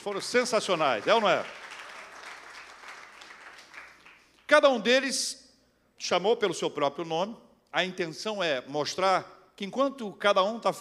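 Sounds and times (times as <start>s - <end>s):
speech: 0.0s - 1.6s, 4.5s - 5.4s, 6.0s - 10.7s
audience clapping: 0.0s - 4.5s.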